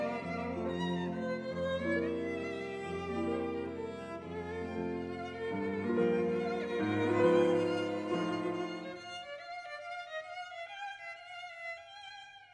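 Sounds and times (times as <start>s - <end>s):
piano trio: 0.0s - 9.1s.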